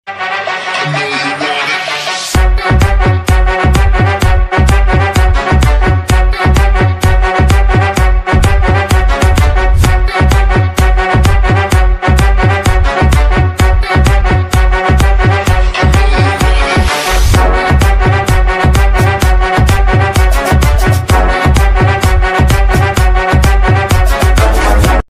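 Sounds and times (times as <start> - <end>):
background music ringtone: 0.1 - 25.0.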